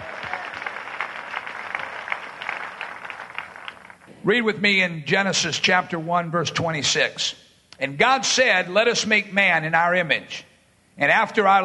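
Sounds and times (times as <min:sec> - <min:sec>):
audience applause: 0:00.0 - 0:04.1
speech: 0:04.2 - 0:11.6.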